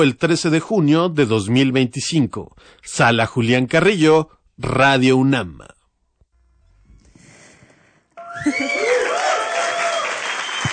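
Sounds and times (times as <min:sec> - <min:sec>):
speech: 0:00.0 - 0:05.8, 0:08.4 - 0:08.8
audience applause: 0:08.2 - 0:10.7.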